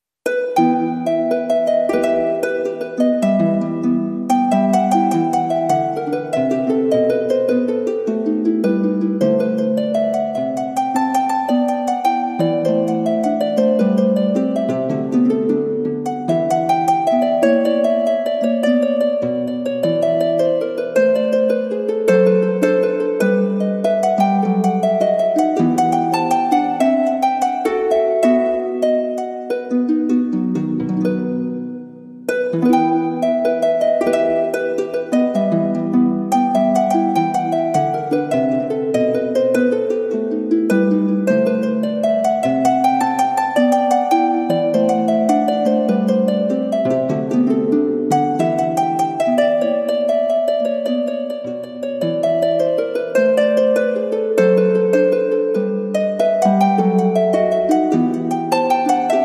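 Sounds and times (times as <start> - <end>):
harp playing a gigue: 0.2 - 59.2.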